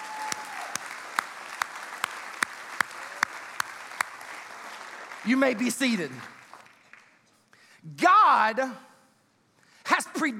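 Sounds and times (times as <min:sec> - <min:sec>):
audience applause: 0:00.0 - 0:07.2
speech: 0:05.2 - 0:06.4, 0:07.8 - 0:08.9, 0:09.9 - 0:10.3.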